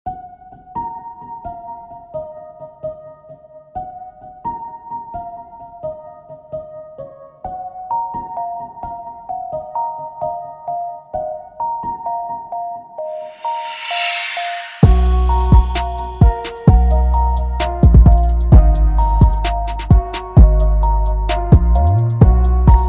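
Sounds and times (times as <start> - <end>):
trap beat: 14.3 - 22.8.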